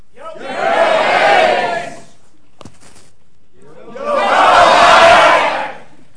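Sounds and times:
crowd roaring and cheering: 0.4 - 2.1, 3.9 - 5.9.

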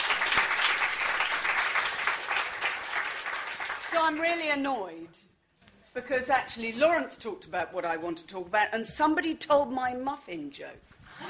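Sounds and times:
audience clapping: 0.0 - 4.4
speech: 4.0 - 5.3, 6.0 - 11.2.

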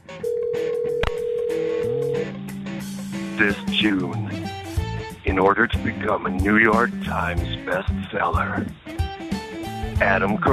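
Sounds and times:
steady electronic voicemail system telephone line tone: 0.1 - 2.4
speech: 3.4 - 4.4, 5.3 - 8.8, 10.0 - 10.5.

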